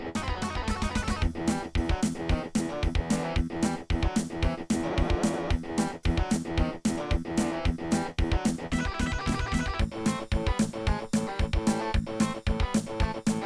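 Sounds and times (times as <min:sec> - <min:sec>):
soundcard test page sound from Logitech SoundMan Wave: 0:00.2 - 0:13.4.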